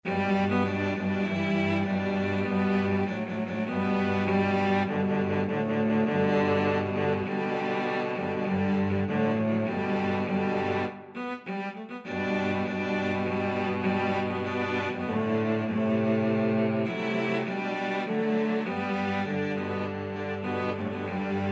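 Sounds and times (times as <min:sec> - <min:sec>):
cello quartet: 0:00.0 - 0:21.5.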